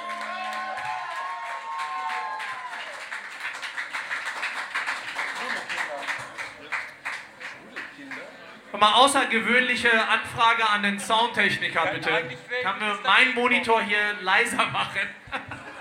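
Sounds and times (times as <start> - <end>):
audience applause: 0.0 - 8.3
speech: 8.7 - 15.2
laughter: 15.2 - 15.8.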